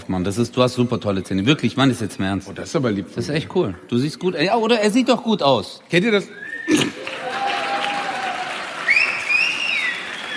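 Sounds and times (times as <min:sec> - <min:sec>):
speech: 0:00.1 - 0:07.0
high-pitched whoops or whistles: 0:06.3 - 0:10.3
audience clapping: 0:06.7 - 0:10.3.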